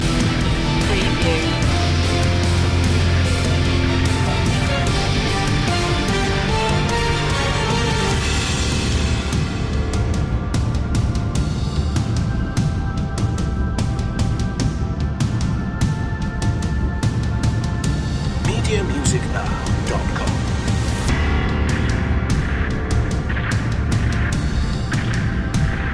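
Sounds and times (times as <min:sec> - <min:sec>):
gothic hero trailer music: 0:00.0 - 0:25.9.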